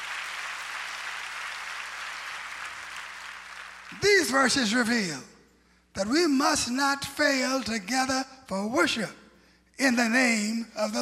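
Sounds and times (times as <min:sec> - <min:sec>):
audience clapping hands: 0:00.0 - 0:04.5
speech: 0:03.9 - 0:05.3, 0:06.0 - 0:09.2, 0:09.8 - 0:10.9.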